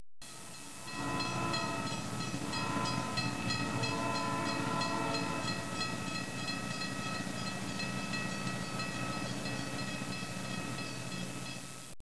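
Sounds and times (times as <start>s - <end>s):
train: 0.2s - 12.0s.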